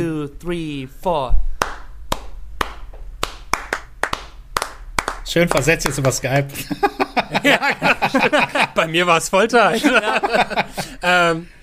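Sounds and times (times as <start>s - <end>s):
speech: 0.0s - 1.5s, 5.3s - 11.6s
hand claps in a 3-2 clave rhythm: 1.6s - 6.5s
laughter: 6.5s - 11.3s.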